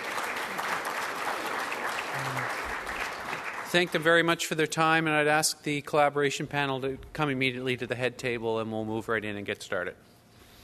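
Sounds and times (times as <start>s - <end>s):
audience applause: 0.0s - 4.2s
speech: 3.7s - 10.1s.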